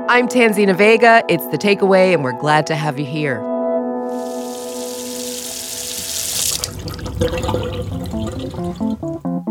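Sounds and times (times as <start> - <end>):
speech: 0.1 - 3.5, 7.2 - 7.7
water running from a tap: 4.1 - 9.3.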